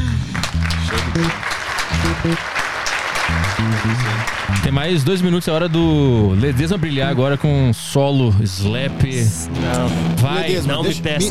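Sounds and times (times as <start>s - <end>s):
applause: 0.3s - 7.3s
speech: 1.2s - 2.6s, 3.3s - 11.2s.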